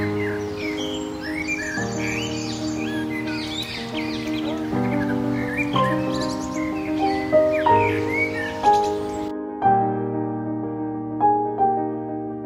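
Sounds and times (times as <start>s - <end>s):
birds singing: 0.0s - 9.3s
ambient relaxing piano music: 0.0s - 12.4s.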